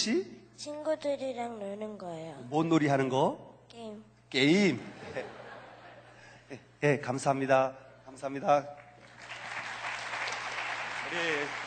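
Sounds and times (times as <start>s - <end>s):
speech: 0.0s - 5.4s, 6.5s - 8.8s, 11.1s - 11.6s
laughter: 4.9s - 6.4s
crowd applause: 9.0s - 11.6s.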